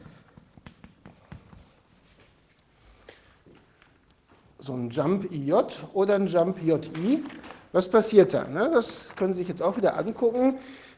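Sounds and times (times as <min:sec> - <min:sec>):
faint writing strokes during a lecture: 0:00.0 - 0:03.8
speech: 0:04.6 - 0:10.8.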